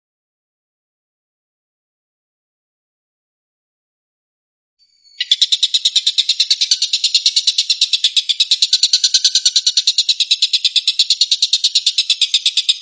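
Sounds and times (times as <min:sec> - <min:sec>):
stork-billed kingfisher rattling call: 0:05.2 - 0:12.8.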